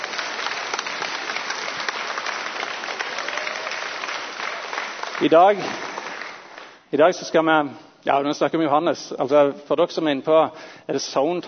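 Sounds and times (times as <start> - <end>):
audience applause: 0.0 - 6.8
speech: 5.2 - 5.9, 6.9 - 11.4.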